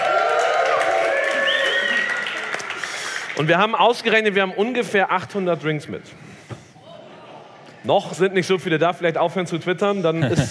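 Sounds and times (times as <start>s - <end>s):
audience applause: 0.0s - 3.8s
speech: 3.4s - 6.3s, 7.8s - 10.5s.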